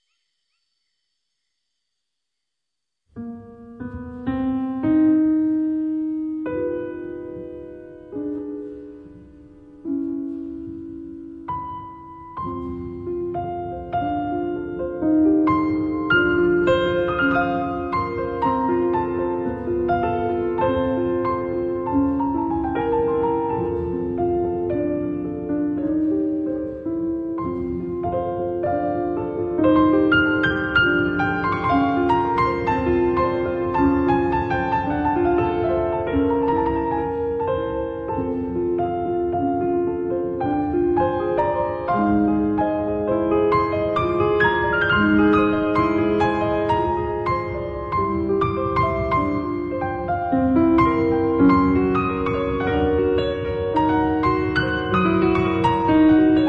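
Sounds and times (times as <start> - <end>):
piano: 3.1 - 56.4.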